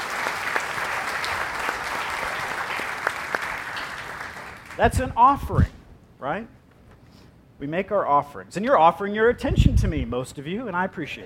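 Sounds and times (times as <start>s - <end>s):
audience applause: 0.0s - 4.8s
speech: 4.8s - 6.6s, 7.6s - 11.2s.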